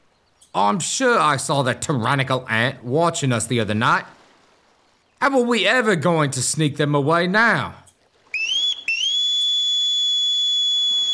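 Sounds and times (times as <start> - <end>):
speech: 0.5 - 4.2, 5.2 - 7.8
whistled signal from a window: 8.3 - 11.1.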